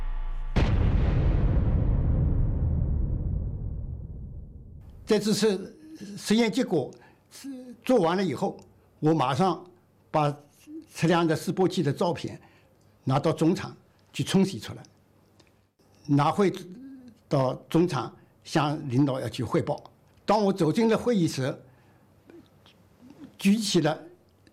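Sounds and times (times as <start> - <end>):
full-scale detonation test of a Chinese nuclear device: 0.0 - 5.1
person speaking: 5.0 - 12.4, 16.0 - 21.4, 22.3 - 24.5.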